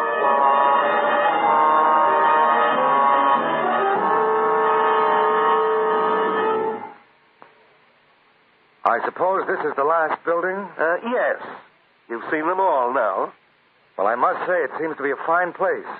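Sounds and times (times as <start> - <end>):
alarm bell ringing: 0.0 - 7.0
speech: 9.1 - 13.4, 14.0 - 15.9.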